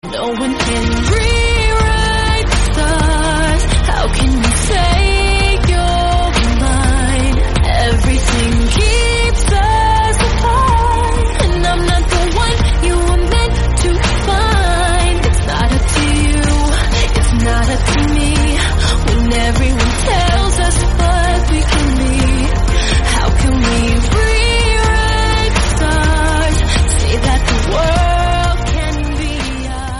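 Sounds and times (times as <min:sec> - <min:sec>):
English song: 0:00.0 - 0:29.9.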